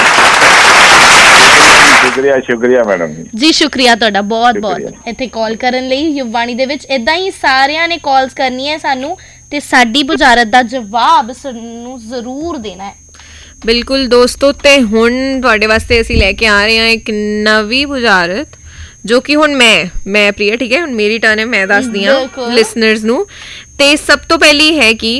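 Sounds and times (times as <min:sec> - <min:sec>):
studio audience applause for a riddle game winner: 0:00.0 - 0:02.2
speech: 0:02.2 - 0:13.0, 0:13.6 - 0:25.1.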